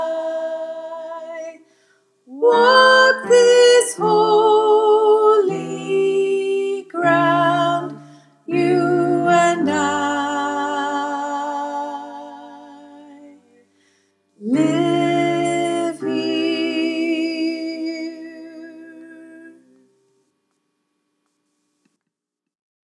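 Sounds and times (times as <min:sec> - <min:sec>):
choir with soprano: 0:00.0 - 0:01.6, 0:02.3 - 0:13.5, 0:14.4 - 0:19.6.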